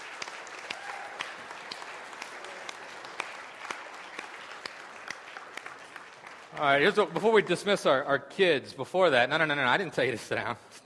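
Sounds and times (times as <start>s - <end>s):
audience applause: 0.0s - 8.0s
speech: 6.6s - 10.8s.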